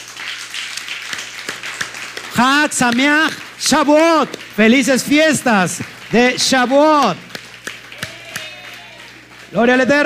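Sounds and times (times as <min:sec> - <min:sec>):
crowd applause: 0:00.0 - 0:10.0
speech: 0:02.4 - 0:07.3, 0:09.5 - 0:10.0.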